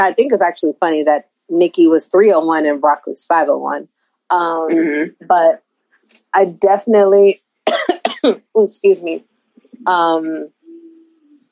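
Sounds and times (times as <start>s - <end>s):
speech: 0.0s - 5.6s, 6.3s - 10.6s
person coughing and burping at the same time: 7.7s - 8.5s.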